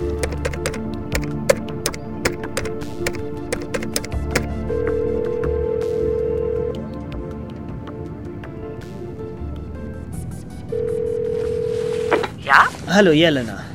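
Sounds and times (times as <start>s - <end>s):
clicks and button taps as a number is dialed: 0.2s - 4.5s
satellite telephone tone: 1.9s - 6.9s, 10.7s - 12.4s
speech: 12.9s - 13.7s.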